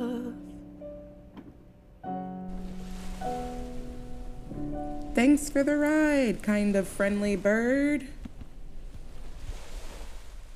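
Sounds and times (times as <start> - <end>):
waves washing on a beach: 2.5 - 10.5
speech: 5.2 - 8.2.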